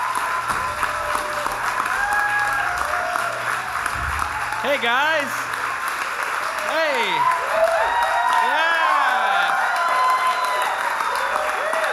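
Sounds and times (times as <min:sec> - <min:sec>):
crowd cheering and applauding: 0:00.0 - 0:11.9
high whoops and shouts: 0:00.8 - 0:03.3, 0:06.9 - 0:11.9
speech: 0:04.6 - 0:05.5, 0:06.7 - 0:07.8.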